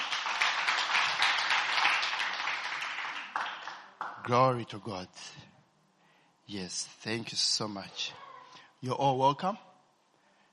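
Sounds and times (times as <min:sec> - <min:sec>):
audience clapping: 0:00.0 - 0:04.5
speech: 0:04.3 - 0:05.4, 0:06.5 - 0:08.2, 0:08.8 - 0:09.7.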